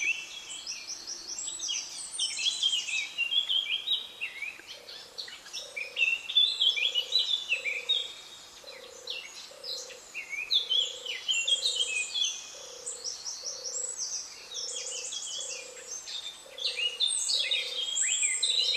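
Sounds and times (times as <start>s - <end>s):
Eurasian blackcap warbling song: 0.0s - 18.7s.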